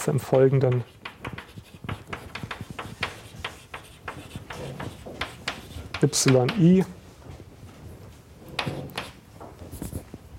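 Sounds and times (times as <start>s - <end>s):
speech: 0.0s - 1.0s, 6.0s - 7.0s
handwriting as formulas are written out: 0.6s - 6.7s, 8.4s - 9.2s.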